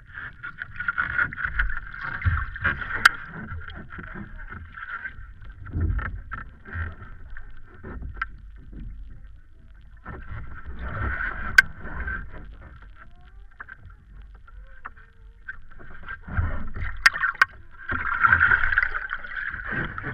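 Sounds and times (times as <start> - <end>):
hot tub hot spring water in Iceland: 0.0 - 20.1.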